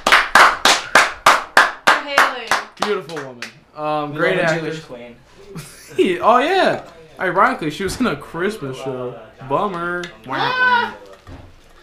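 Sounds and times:
audience applause: 0.0s - 3.5s
speech: 2.8s - 11.0s.

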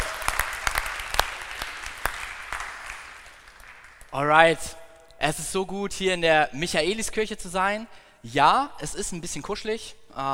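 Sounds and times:
audience applause in a church: 0.0s - 4.1s
speech: 4.1s - 10.3s.

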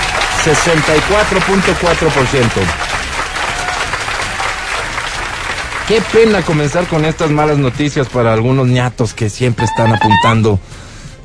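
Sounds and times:
crowd applause: 0.0s - 7.8s
speech: 0.4s - 2.9s, 5.9s - 10.9s.

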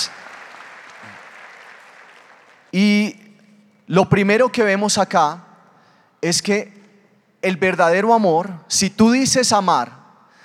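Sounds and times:
audience applause for actors: 0.0s - 2.8s
speech: 2.7s - 3.1s, 3.9s - 5.5s, 6.2s - 6.8s, 7.4s - 10.0s.

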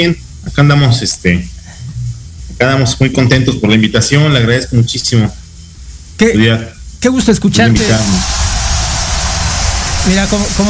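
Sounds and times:
speech: 0.0s - 1.6s, 2.6s - 5.4s, 6.2s - 8.6s, 10.0s - 10.6s
strong applause ovation: 7.8s - 10.6s.

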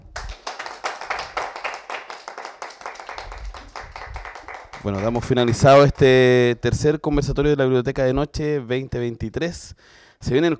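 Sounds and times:
audience applause: 0.1s - 6.2s
speech: 4.8s - 10.5s.

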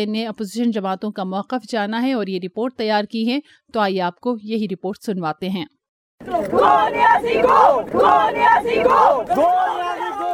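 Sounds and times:
speech: 0.0s - 10.2s
protesters chanting slogans: 6.2s - 10.3s.

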